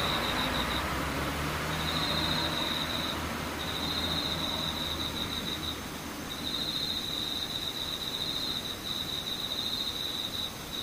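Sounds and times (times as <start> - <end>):
insects trilling: 0.0 - 10.8.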